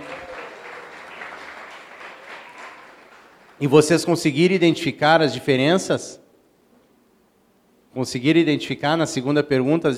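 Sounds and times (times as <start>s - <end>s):
applause: 0.0s - 3.8s
speech: 3.6s - 6.2s, 8.0s - 9.9s.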